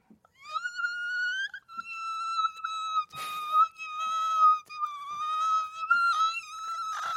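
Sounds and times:
voice imitating a high-pitched mosquito whine: 0:00.4 - 0:07.1.

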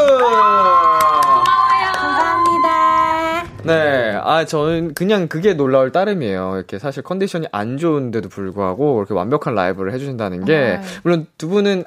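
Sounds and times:
audience applause: 0:00.0 - 0:03.0
speech: 0:04.4 - 0:11.8.

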